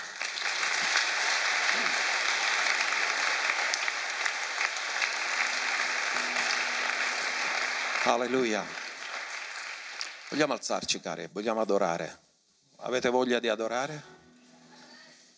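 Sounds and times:
audience applause: 0.0 - 10.7
speech: 8.0 - 8.8, 10.3 - 12.2, 12.8 - 14.1.

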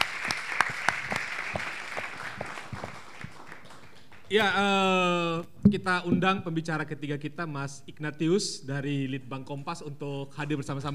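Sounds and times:
audience applause: 0.0 - 4.4
speech: 4.3 - 10.9.

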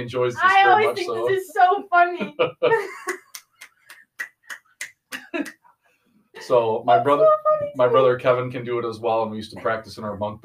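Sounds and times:
speech: 0.0 - 3.2, 6.4 - 10.4
laughter: 2.1 - 3.3
one-handed clapping: 3.1 - 5.6.

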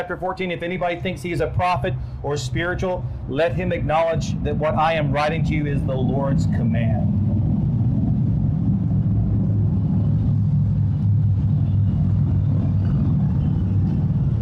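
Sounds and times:
speech: 0.0 - 7.2
cars driving by outside: 0.8 - 14.4.

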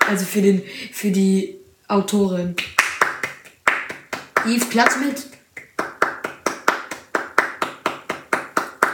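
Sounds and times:
speech: 0.1 - 2.8, 4.4 - 5.4
hand clapping: 2.6 - 8.9.

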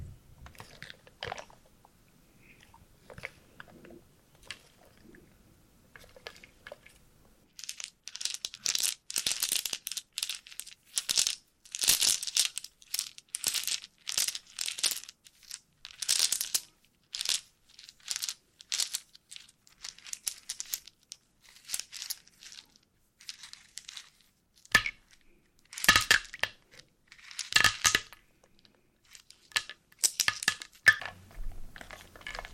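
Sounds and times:
wooden pieces stirred and shuffled together: 7.6 - 21.0, 21.6 - 22.7, 25.7 - 26.5, 27.1 - 28.1, 29.1 - 32.5.

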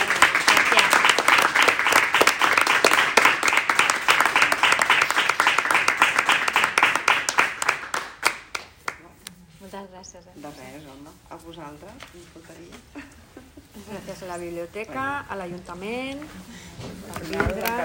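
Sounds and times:
audience applause: 0.0 - 8.6
speech: 11.6 - 13.1, 13.8 - 17.8.

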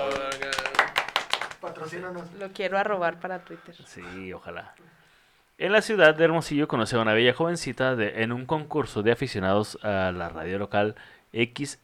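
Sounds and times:
small group clapping: 0.0 - 2.8
speech: 1.8 - 5.0, 5.6 - 11.8.

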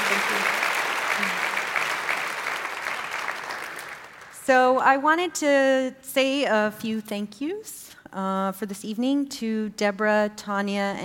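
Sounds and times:
audience applause: 0.0 - 4.4
speech: 4.5 - 11.0.

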